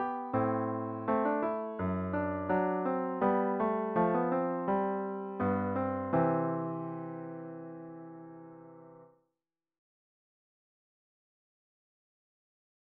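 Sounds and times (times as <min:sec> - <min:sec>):
piano suite in D: 0:00.0 - 0:09.1.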